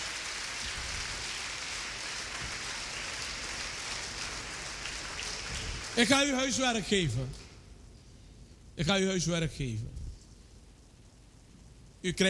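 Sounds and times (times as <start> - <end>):
audience applause: 0.0 - 6.3
speech: 6.0 - 7.4, 8.8 - 10.0, 12.0 - 12.2.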